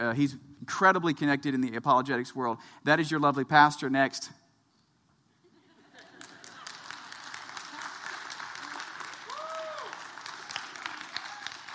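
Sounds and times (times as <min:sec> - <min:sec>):
speech: 0:00.0 - 0:04.4
audience applause: 0:06.1 - 0:11.7.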